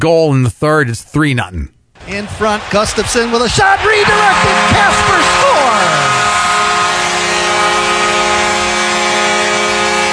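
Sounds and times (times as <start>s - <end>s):
speech: 0.0s - 5.4s
arena foghorn goal horn: 3.8s - 10.1s.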